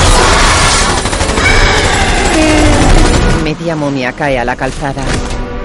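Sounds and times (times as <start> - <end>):
rapid gunfire: 0.0 - 3.5
speech: 3.6 - 5.3.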